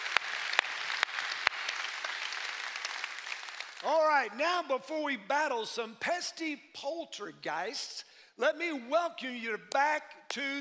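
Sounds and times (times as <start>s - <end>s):
audience applause at a church service: 0.0s - 3.9s
speech: 3.8s - 10.5s.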